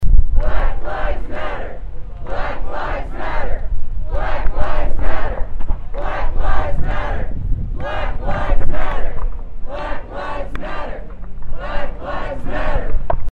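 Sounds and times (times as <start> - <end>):
people chanting: 0.4 - 13.0.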